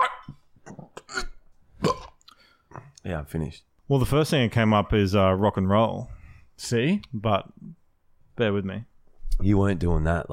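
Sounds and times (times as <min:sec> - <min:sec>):
burp: 0:00.6 - 0:02.9
speech: 0:03.0 - 0:07.7, 0:08.4 - 0:10.3.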